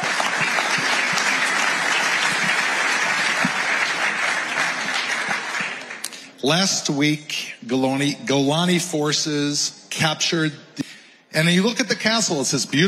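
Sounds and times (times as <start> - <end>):
audience applause: 0.0 - 6.3
speech: 6.4 - 12.8.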